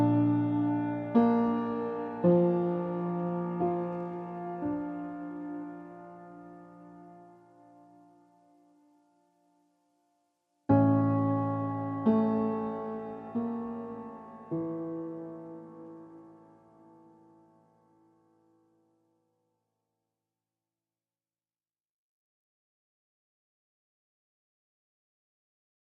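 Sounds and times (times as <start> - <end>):
solo piano: 0.0 - 18.9.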